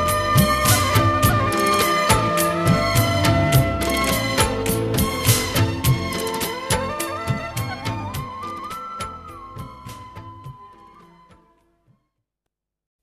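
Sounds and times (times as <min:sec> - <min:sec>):
saxophone: 0:00.0 - 0:09.8.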